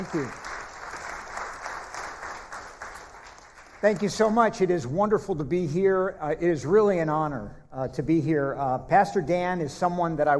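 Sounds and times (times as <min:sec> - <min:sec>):
speech: 0:00.0 - 0:00.4, 0:03.8 - 0:10.3
church congregation applauding a guest speaker: 0:00.0 - 0:04.7.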